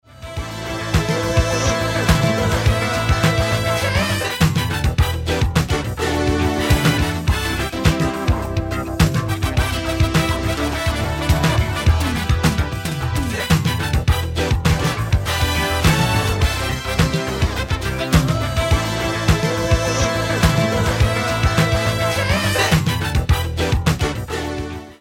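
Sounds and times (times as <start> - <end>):
karaoke music: 0.1 - 25.0.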